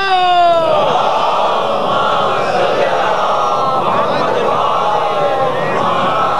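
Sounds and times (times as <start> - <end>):
audience chanting salawat in unison: 0.0 - 6.3.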